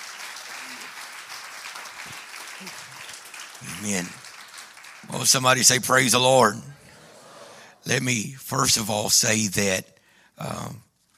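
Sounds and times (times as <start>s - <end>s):
audience applause: 0.0s - 7.6s
speech: 3.6s - 4.2s, 5.2s - 6.7s, 7.8s - 10.9s.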